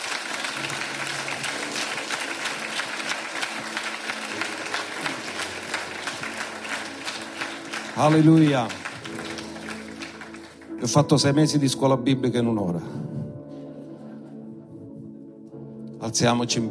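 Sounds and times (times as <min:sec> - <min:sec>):
audience applause: 0:00.0 - 0:11.0
speech: 0:08.0 - 0:08.8, 0:10.8 - 0:13.2, 0:16.2 - 0:16.6.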